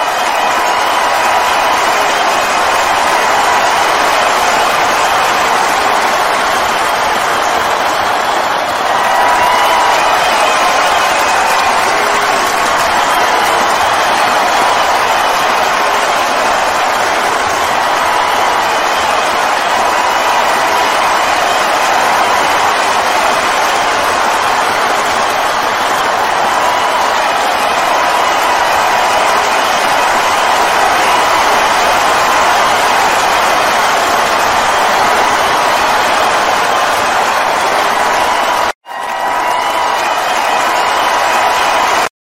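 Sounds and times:
large crowd cheering and applauding: 0:00.0 - 0:42.2.

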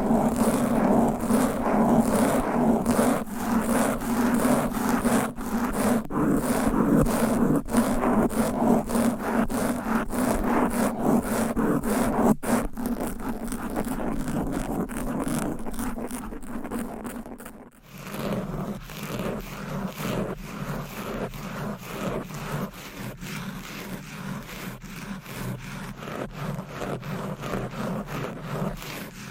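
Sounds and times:
nails and mic covers scratching a microphone: 0:00.0 - 0:29.3.

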